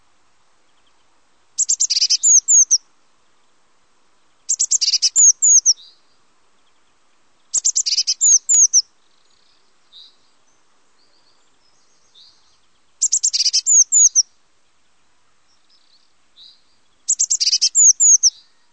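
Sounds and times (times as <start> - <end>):
Eurasian blue tit song: 0.6 - 2.8, 4.2 - 18.7.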